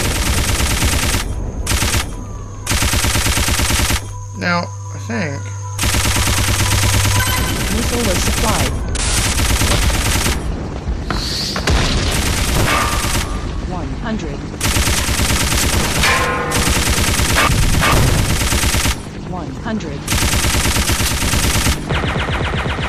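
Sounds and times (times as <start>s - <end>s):
machine gun fire in a video game: 0.0s - 4.1s, 5.8s - 10.6s, 11.7s - 13.6s, 14.6s - 19.2s, 20.1s - 22.8s
speech: 4.4s - 5.5s, 7.8s - 8.9s, 13.8s - 15.0s, 19.3s - 20.7s.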